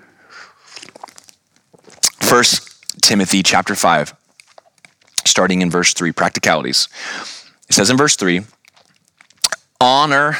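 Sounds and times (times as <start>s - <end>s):
person sipping coffee: 0.5s - 3.0s, 4.2s - 5.3s, 8.4s - 9.8s
speech: 2.3s - 4.2s, 5.4s - 8.6s, 9.8s - 10.3s.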